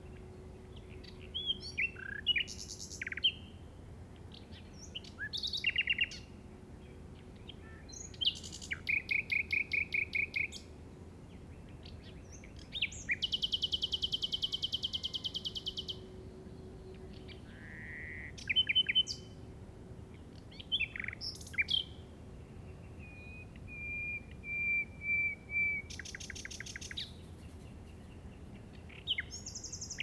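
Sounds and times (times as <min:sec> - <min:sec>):
faint low hum: 0:00.0 - 0:30.0
common nightingale song: 0:04.5 - 0:06.3, 0:07.6 - 0:10.7, 0:11.7 - 0:16.1, 0:16.9 - 0:19.4, 0:20.5 - 0:22.0, 0:22.6 - 0:30.0.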